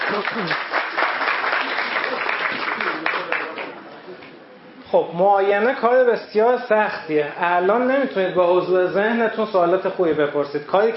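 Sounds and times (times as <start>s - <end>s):
audience applause: 0.0s - 3.8s
speech: 0.1s - 0.8s, 4.9s - 10.9s.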